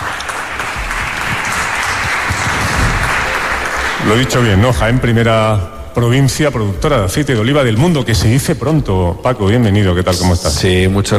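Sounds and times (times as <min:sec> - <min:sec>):
audience applause: 0:00.0 - 0:05.0
speech: 0:04.1 - 0:11.1.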